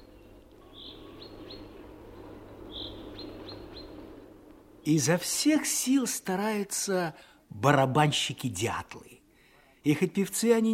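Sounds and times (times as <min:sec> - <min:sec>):
chaffinches singing in spring forest: 0:00.0 - 0:05.2
steady low rumble of noise: 0:00.0 - 0:08.0
speech: 0:04.9 - 0:09.1, 0:09.8 - 0:10.7.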